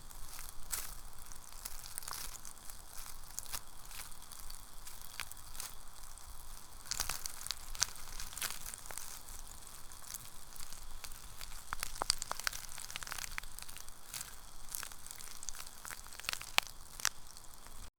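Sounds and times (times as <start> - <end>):
ASMR seed growth sounds: 0.2 - 17.9.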